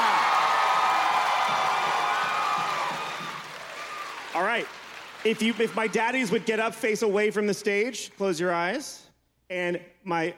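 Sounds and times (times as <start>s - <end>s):
audience applause: 0.0s - 7.0s
speech: 4.6s - 10.3s.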